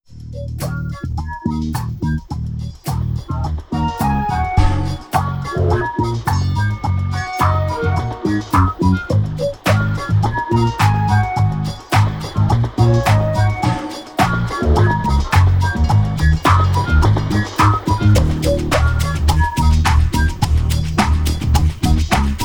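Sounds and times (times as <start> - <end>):
stereo music: 0.1 - 22.4.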